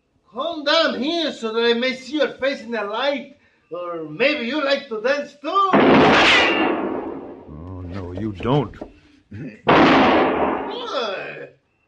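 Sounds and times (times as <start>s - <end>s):
speech: 0.3s - 6.7s, 8.2s - 11.5s
gunshot shooting a pistol out of a man's hand in a 1960 Western television drama: 5.8s - 7.4s, 9.7s - 10.7s.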